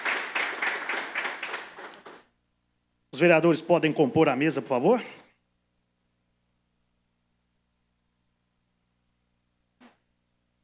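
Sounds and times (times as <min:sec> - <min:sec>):
applause during a tribute at a city council session: 0:00.0 - 0:02.3
speech: 0:03.1 - 0:05.2.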